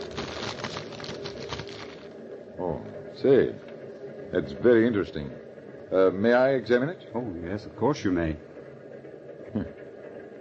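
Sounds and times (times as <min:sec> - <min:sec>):
crinkly rustling of a wrapped cigarette case being unwrapped: 0:00.0 - 0:02.2
speech: 0:02.6 - 0:03.7, 0:04.3 - 0:08.5.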